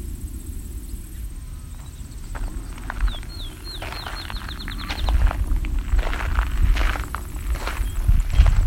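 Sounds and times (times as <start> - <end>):
Canada geese calling: 1.7 - 8.6.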